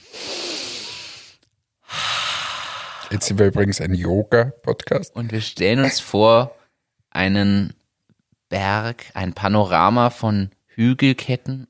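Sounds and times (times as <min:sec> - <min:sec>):
deep breath in and out: 0:00.0 - 0:03.3
speech: 0:03.1 - 0:06.6, 0:07.2 - 0:07.8, 0:08.5 - 0:11.6.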